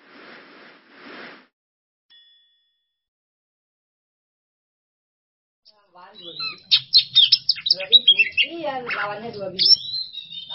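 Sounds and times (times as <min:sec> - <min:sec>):
Oriental magpie-robin song: 0:06.0 - 0:10.5.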